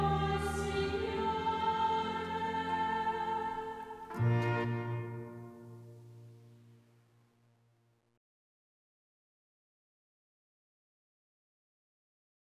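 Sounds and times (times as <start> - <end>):
bass voices singing: 0.0 - 5.2.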